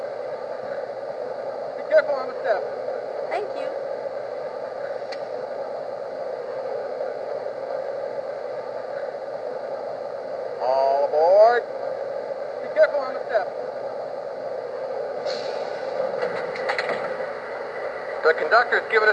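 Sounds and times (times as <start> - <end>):
DASH 8 electric train: 0.0 - 19.1.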